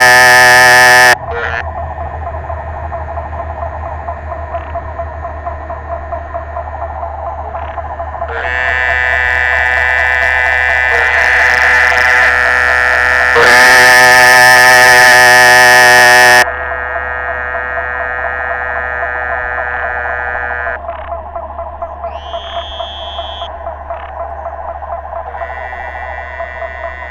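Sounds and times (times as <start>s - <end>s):
Muller's termite frog Dermatonotus muelleri calling: 0.0s - 1.6s, 7.5s - 21.1s, 22.1s - 24.2s, 25.2s - 27.0s.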